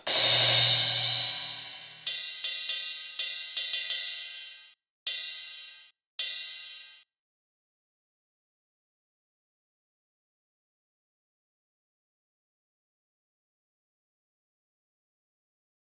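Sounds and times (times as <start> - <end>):
drums jamming: 0.1 - 7.0.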